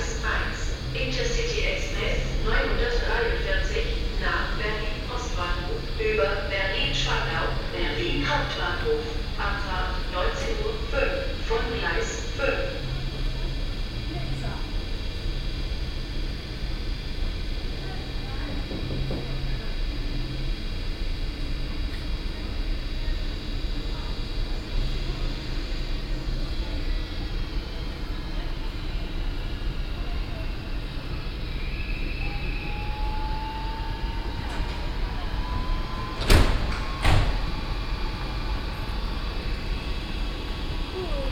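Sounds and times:
low mechanical hum at Wolfsburg Hauptbahnhof platform 1: 0:00.0 - 0:41.3.

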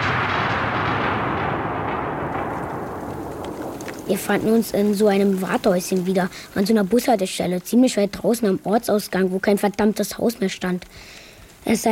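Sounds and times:
thunder during a storm: 0:00.0 - 0:06.6
speech: 0:04.1 - 0:11.8.

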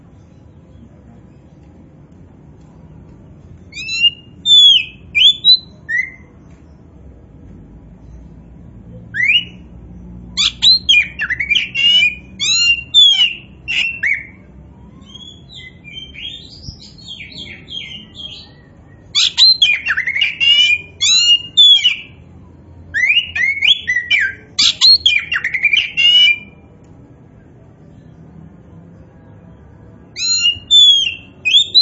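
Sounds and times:
Oriental magpie-robin song of whistled phrases: 0:03.7 - 0:06.3, 0:09.1 - 0:09.7, 0:10.4 - 0:22.2, 0:22.9 - 0:26.6, 0:30.1 - 0:31.8.

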